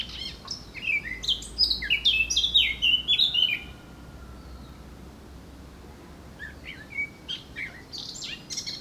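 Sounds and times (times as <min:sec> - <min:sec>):
Eurasian blackcap singing: 0:00.0 - 0:03.7, 0:06.4 - 0:08.7.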